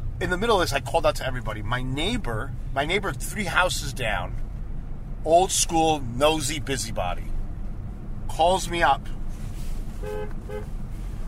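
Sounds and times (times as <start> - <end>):
low rumble of traffic or engine noise: 0.0 - 11.2
speech: 0.2 - 4.5, 5.2 - 7.3, 8.3 - 9.2, 10.0 - 10.8
car horn double beep: 10.0 - 10.8.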